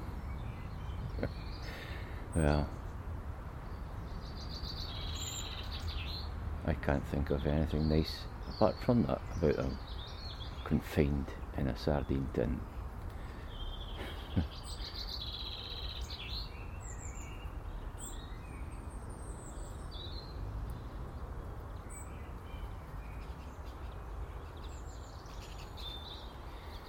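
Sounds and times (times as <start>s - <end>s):
steady noisy hiss: 0.0s - 26.8s
wild birds chirping and tweeting at feeders: 0.0s - 26.8s
speech: 1.2s - 2.8s, 6.7s - 10.0s, 10.7s - 12.7s, 14.4s - 14.6s.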